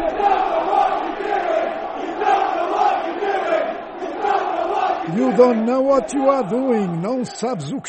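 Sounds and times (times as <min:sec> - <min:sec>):
crowd of football fans chanting in unison at coach: 0:00.0 - 0:07.8
speech: 0:05.2 - 0:07.8.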